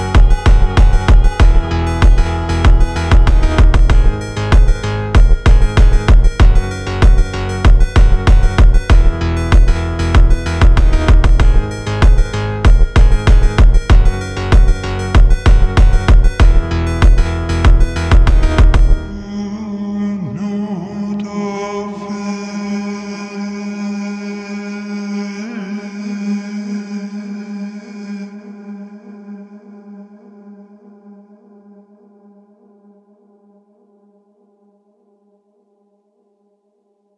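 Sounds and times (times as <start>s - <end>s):
Iranian funk music: 0.0s - 19.2s.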